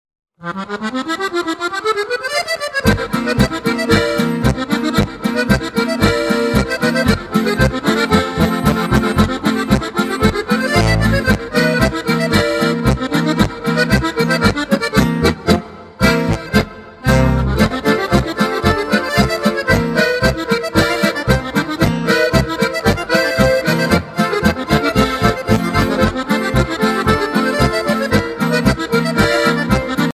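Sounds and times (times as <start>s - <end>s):
accordion polka: 0.4s - 30.1s.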